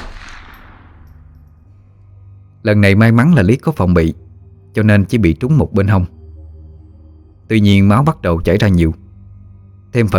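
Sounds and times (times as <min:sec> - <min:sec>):
gunshot sound effect in a horror audio drama: 0:00.0 - 0:01.5
speech: 0:02.6 - 0:06.2, 0:07.5 - 0:09.0, 0:09.9 - 0:10.1.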